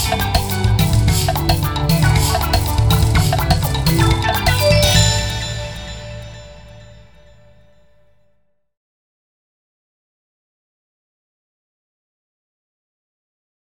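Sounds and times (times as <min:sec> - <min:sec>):
karaoke backing track: 0:00.0 - 0:05.5.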